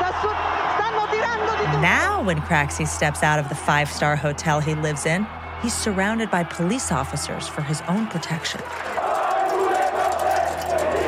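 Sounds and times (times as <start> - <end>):
crowd shouting at Bettino Craxi outside a five-star hotel: 0.0 - 2.3, 5.6 - 11.0
speech: 1.8 - 9.0.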